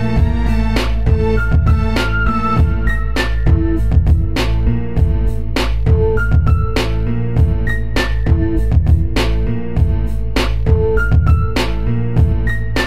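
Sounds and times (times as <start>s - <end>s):
spatial 3D bass: 0.0s - 12.8s.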